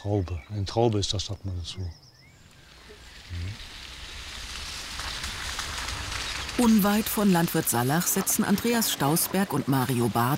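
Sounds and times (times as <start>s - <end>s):
speech: 0.0s - 2.0s, 6.6s - 10.3s
rain falling outdoors: 2.4s - 10.3s.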